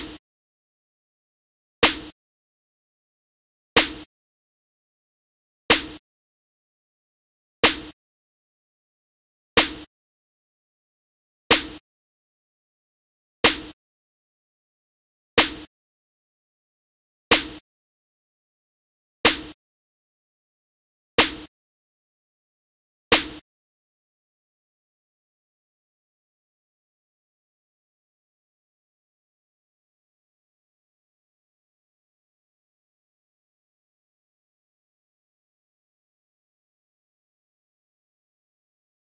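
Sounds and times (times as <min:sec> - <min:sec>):
snare noise: 0:00.0 - 0:00.2, 0:01.8 - 0:02.2, 0:03.8 - 0:04.1, 0:05.7 - 0:06.0, 0:07.6 - 0:08.0, 0:09.6 - 0:09.9, 0:11.5 - 0:11.8, 0:13.4 - 0:13.8, 0:15.4 - 0:15.7, 0:19.3 - 0:19.6, 0:21.2 - 0:21.5, 0:23.1 - 0:23.4.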